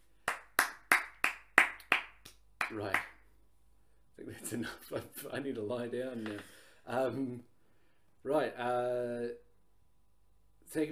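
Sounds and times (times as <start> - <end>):
people clapping: 0.2 - 3.2
speech: 2.7 - 3.1, 4.2 - 7.5, 8.2 - 9.4.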